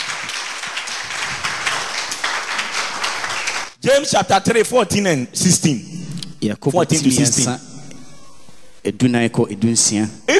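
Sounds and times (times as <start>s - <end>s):
crowd clapping: 0.0s - 3.8s
speech: 3.8s - 7.7s, 8.8s - 10.3s.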